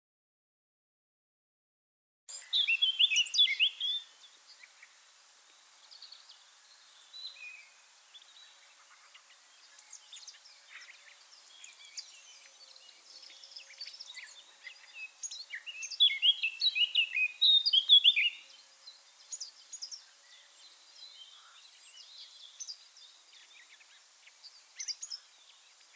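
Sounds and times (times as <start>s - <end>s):
Eurasian blackcap warbling: 2.3s - 13.0s
faint bird chirps: 2.3s - 25.9s
soft background hiss: 2.3s - 25.9s.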